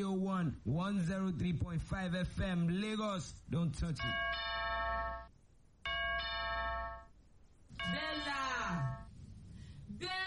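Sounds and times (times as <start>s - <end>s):
speech: 0.0s - 4.5s
low hum: 0.0s - 10.2s
electronic doorbell ding-dong: 4.0s - 5.3s, 5.9s - 7.1s.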